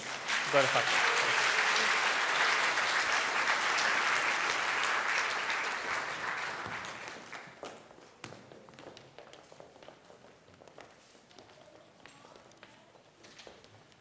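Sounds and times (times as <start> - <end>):
audience applause: 0.0 - 7.7
speech: 0.5 - 1.1.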